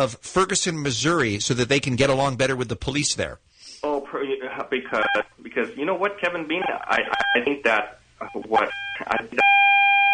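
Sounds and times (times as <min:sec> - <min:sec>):
speech: 0:00.0 - 0:09.4
beeping on a phone line: 0:08.2 - 0:10.1.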